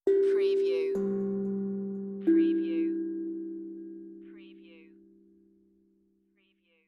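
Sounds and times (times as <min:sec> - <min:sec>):
meditative tongue drum tone: 0:00.0 - 0:05.5.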